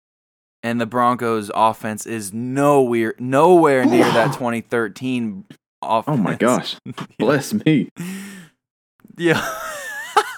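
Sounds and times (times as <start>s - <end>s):
speech: 0.6s - 8.4s, 9.1s - 9.6s
person sneezing: 3.8s - 4.4s
laughter: 9.3s - 10.3s.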